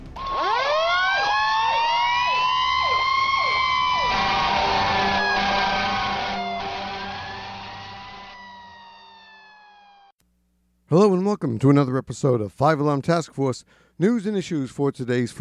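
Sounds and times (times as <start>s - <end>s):
fire engine siren wailing: 0.2s - 10.1s
speech: 11.0s - 15.4s.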